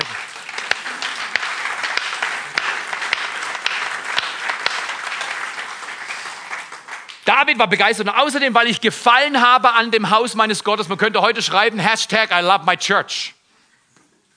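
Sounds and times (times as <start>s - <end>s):
audience applause: 0.0s - 7.3s
speech: 7.3s - 13.4s.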